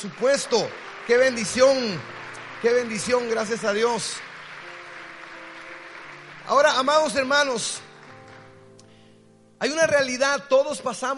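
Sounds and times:
speech: 0.0 - 4.3, 6.5 - 7.9, 9.6 - 11.1
audience applause: 0.0 - 8.7.

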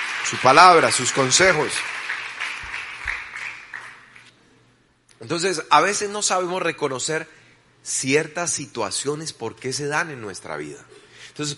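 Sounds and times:
audience applause: 0.0 - 4.3
speech: 0.3 - 2.0, 5.2 - 11.5.

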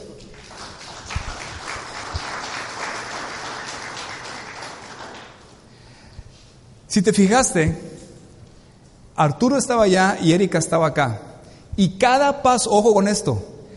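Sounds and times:
crowd applause: 0.0 - 5.6
speech: 6.9 - 7.9, 9.2 - 13.5.

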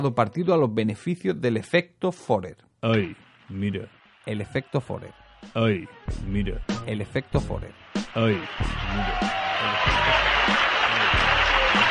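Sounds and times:
speech: 0.0 - 11.8
sparse applause: 3.1 - 5.6, 7.6 - 11.8.

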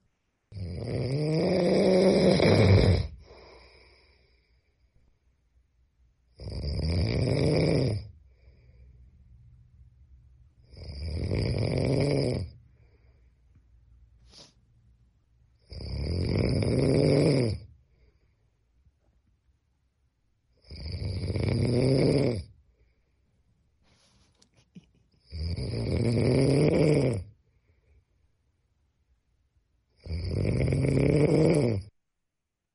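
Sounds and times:
man snoring loudly: 0.5 - 3.4, 6.3 - 8.1, 10.6 - 12.6, 15.6 - 17.7, 20.6 - 22.5, 25.2 - 27.3, 30.0 - 31.9.

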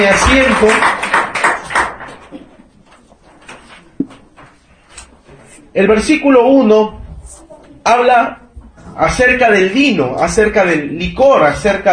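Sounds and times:
speech: 0.0 - 0.9, 5.8 - 7.0, 7.8 - 8.4, 9.0 - 11.9
audience clapping: 0.0 - 2.4.

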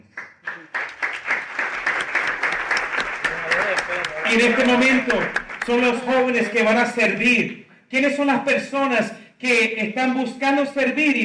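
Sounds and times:
audience applause: 0.1 - 6.6
speech: 4.3 - 11.2.

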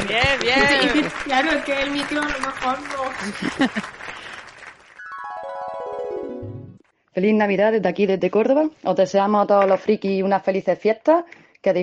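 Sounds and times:
laughter: 0.0 - 1.4, 3.0 - 4.4
applause: 0.0 - 5.8
speech: 0.1 - 4.1, 7.2 - 11.8.

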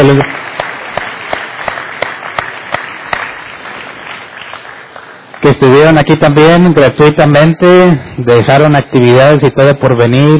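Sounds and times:
speech: 0.0 - 0.4, 5.5 - 10.3
audience applause: 0.0 - 5.6.

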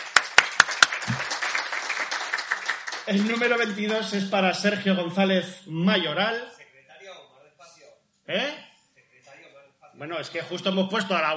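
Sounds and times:
audience applause: 0.0 - 4.1
speech: 3.1 - 6.6, 8.3 - 8.6, 10.0 - 11.3.

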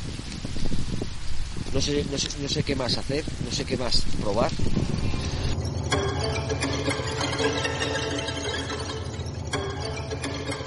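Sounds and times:
strong wind outdoors: 0.0 - 7.0
rain outdoors: 0.0 - 10.6
speech: 1.7 - 5.1.

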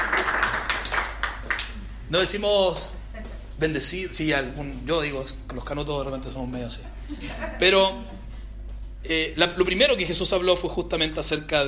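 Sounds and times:
applause: 0.0 - 1.8
speech: 2.1 - 3.0, 3.6 - 8.2, 9.0 - 11.6
laughter: 6.8 - 8.2.

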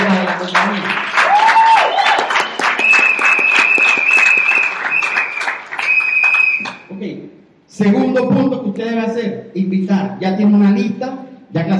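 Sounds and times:
loud audience applause: 0.0 - 6.9
speech: 7.8 - 11.7.

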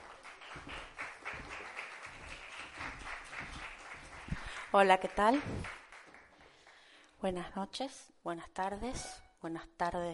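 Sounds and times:
crowd applauding: 0.0 - 6.8
speech: 4.7 - 5.8, 7.2 - 10.1.

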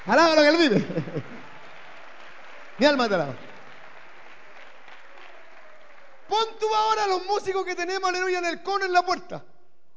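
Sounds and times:
audience applauding: 0.0 - 8.4
speech: 0.1 - 1.4, 2.8 - 3.5, 6.3 - 9.5
laughter: 0.5 - 1.6.

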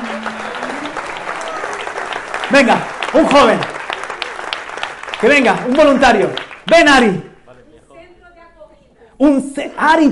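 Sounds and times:
audience applauding: 0.0 - 7.2
speech: 2.5 - 3.8, 5.2 - 7.3, 9.2 - 10.1.

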